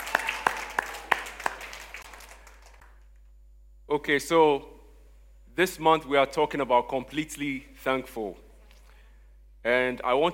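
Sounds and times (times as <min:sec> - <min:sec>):
audience clapping: 0:00.0 - 0:03.1
speech: 0:03.9 - 0:04.7, 0:05.6 - 0:08.4, 0:09.6 - 0:10.3.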